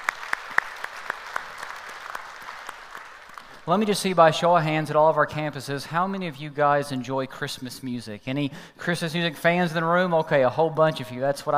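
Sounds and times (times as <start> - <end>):
church congregation applauding to welcome online viewers: 0.0 - 3.7
speech: 3.7 - 11.5.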